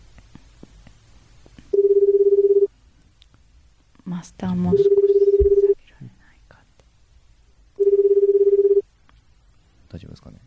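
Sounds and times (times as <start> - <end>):
ringback tone of an outgoing telephone call: 1.7 - 2.7, 4.7 - 5.8, 7.8 - 8.8
speech: 4.2 - 4.9.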